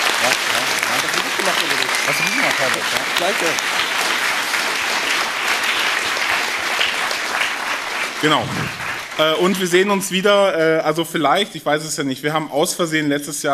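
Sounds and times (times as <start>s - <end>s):
audience applause: 0.0s - 10.2s
speech: 2.1s - 3.9s, 8.2s - 13.5s.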